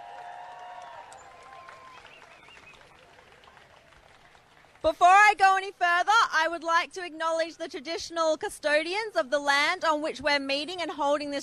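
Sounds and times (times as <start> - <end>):
faint crowd applause at an International Women's Day rally for a trade union choir: 0.0 - 4.9
speech: 4.8 - 11.4.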